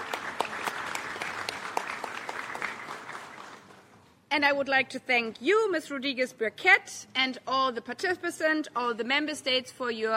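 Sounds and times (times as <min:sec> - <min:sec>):
audience applause: 0:00.0 - 0:03.8
speech: 0:04.3 - 0:10.1.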